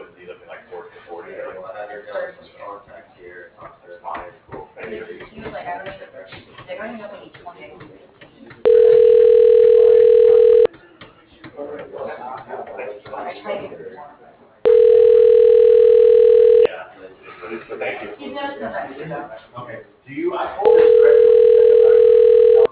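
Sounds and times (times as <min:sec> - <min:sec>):
office phone system ringback tone calling an extension: 0:08.7 - 0:10.7, 0:14.7 - 0:16.7, 0:20.7 - 0:22.6.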